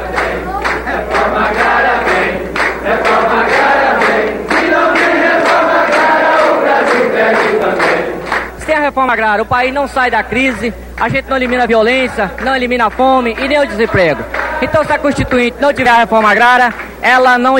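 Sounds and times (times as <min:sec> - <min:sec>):
rural workers crowd singing: 0:00.0 - 0:08.6, 0:13.0 - 0:16.3
rural workers crowd clapping: 0:00.0 - 0:08.8, 0:10.0 - 0:17.5
speech: 0:09.0 - 0:17.5
laughter: 0:12.0 - 0:15.9.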